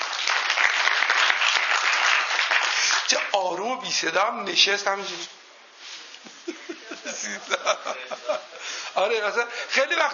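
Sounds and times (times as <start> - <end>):
audience applause welcoming a guest: 0.0 - 3.6
speech: 3.1 - 5.4, 7.2 - 10.1
laughter: 6.4 - 9.0.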